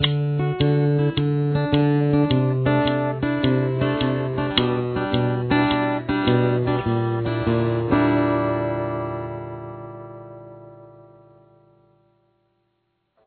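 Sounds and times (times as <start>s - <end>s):
outro music: 0.0s - 11.2s.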